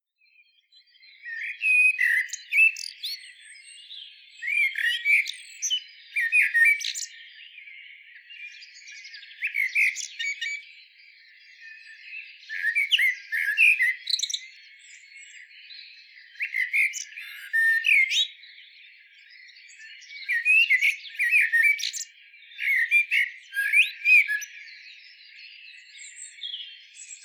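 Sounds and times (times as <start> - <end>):
Eurasian blackbird singing: 0.2 - 27.2
faint high bird chatter: 0.2 - 27.2.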